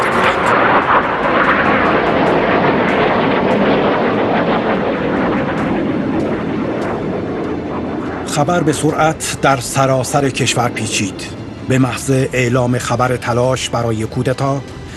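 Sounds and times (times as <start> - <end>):
F-16 fighter jets flying low over Ankara: 0.0 - 13.2
speech: 8.4 - 14.8.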